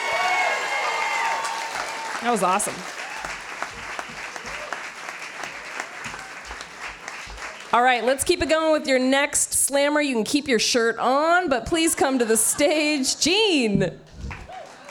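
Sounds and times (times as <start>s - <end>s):
audience cheering: 0.0s - 8.1s, 14.4s - 14.8s
speech: 2.2s - 3.0s, 7.7s - 14.0s.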